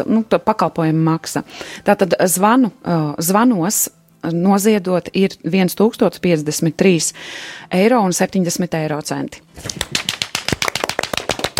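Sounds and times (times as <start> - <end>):
speech: 0.0 - 10.1
live hand clapping: 9.6 - 11.5.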